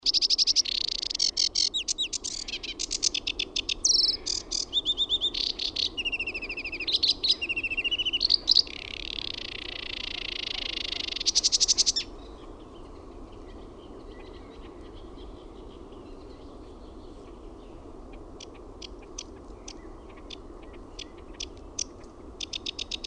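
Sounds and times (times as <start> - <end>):
Sedge warbler song of hurried scratchy chatter: 0.0 - 12.4, 18.4 - 23.0.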